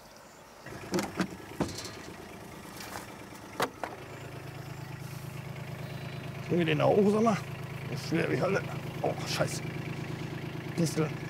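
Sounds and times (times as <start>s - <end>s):
car engine humming as the vehicle pulls up: 0.6s - 11.2s
clicks and thumps: 0.7s - 4.0s
speech: 6.5s - 9.8s, 10.8s - 11.2s.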